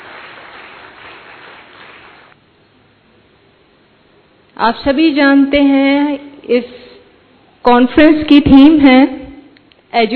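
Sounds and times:
audience applause: 0.0 - 2.4
speech: 4.6 - 6.8, 7.6 - 9.2, 9.9 - 10.1.

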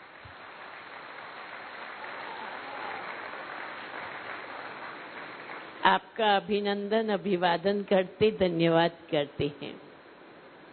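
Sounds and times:
faint applause from a youth audience welcoming a guest: 0.0 - 5.8
speech: 5.9 - 9.9.

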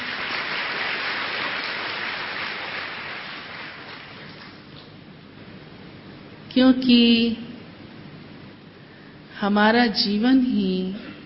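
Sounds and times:
audience clapping: 0.0 - 4.7
speech: 6.6 - 7.4, 9.4 - 11.1.

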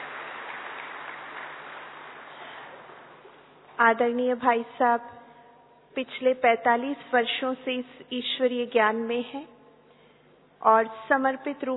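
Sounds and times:
crowd applauding: 0.0 - 3.3
speech: 3.8 - 5.2, 6.0 - 9.6, 10.6 - 11.7.

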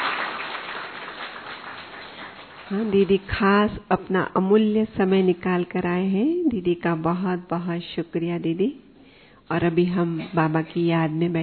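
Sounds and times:
audience clapping at a devotional gathering: 0.0 - 3.3
speech: 2.7 - 8.8, 9.5 - 11.4.

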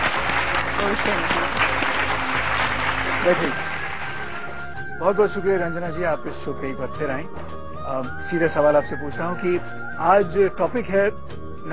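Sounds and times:
studio audience applauding a guest on a TV talk show: 0.0 - 5.4
speech: 0.8 - 1.6, 3.2 - 3.7, 5.0 - 11.7.

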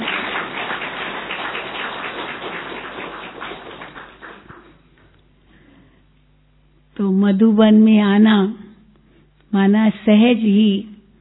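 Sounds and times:
audience applause: 0.0 - 4.9
speech: 7.2 - 8.6, 9.5 - 10.9.

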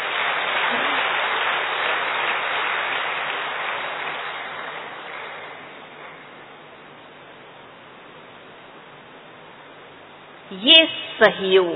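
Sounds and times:
audience clapping for themselves: 0.0 - 6.3
speech: 10.6 - 11.7.

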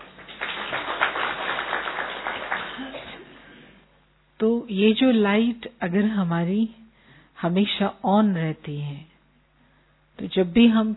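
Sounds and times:
children clapping at a Hindi school: 0.0 - 3.2
speech: 4.4 - 6.8, 7.4 - 9.1, 10.2 - 10.9.

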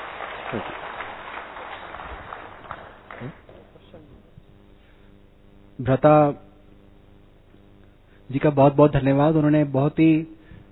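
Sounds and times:
audience applause: 0.0 - 3.9
speech: 0.5 - 0.8, 3.2 - 3.4, 5.8 - 6.4, 8.3 - 10.4.

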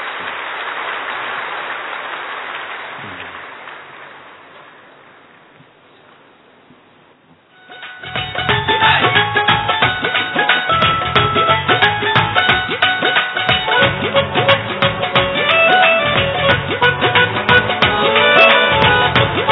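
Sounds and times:
crowd clapping: 0.0 - 5.5, 7.8 - 19.5
music: 7.5 - 19.5.

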